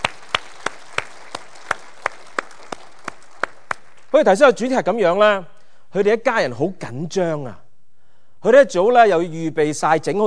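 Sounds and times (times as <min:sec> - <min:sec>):
audience hand claps: 0:00.0 - 0:04.1
speech: 0:04.1 - 0:07.6, 0:08.4 - 0:10.2.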